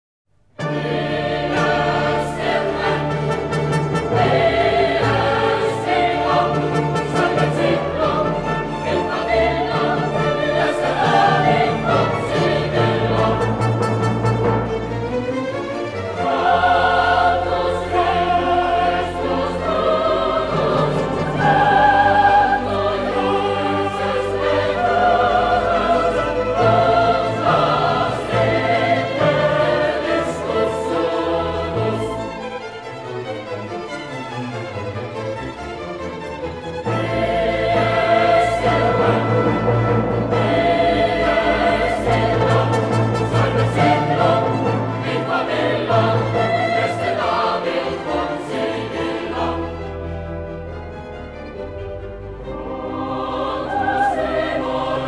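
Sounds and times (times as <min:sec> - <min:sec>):
choral requiem in D minor: 0:00.6 - 0:55.0.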